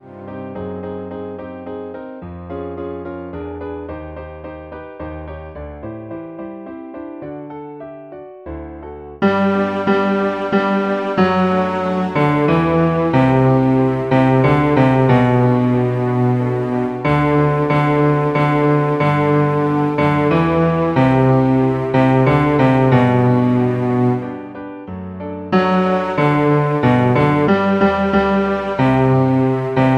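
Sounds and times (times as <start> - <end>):
bass: 9.2 - 24.4, 25.6 - 29.9.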